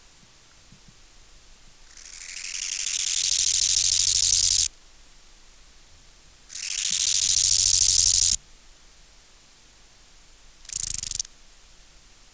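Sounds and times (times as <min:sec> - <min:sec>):
bow-winged grasshopper rasping song: 0:01.9 - 0:04.7, 0:06.5 - 0:08.4, 0:10.6 - 0:11.3.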